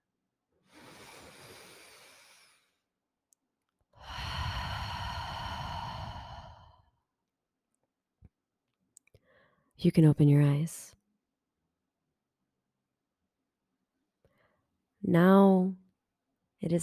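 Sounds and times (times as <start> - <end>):
deep breath in and exhale: 0.6 - 2.9, 4.0 - 7.0, 9.2 - 9.7, 14.2 - 14.7
speech: 9.8 - 11.0, 15.1 - 15.8, 16.6 - 16.8.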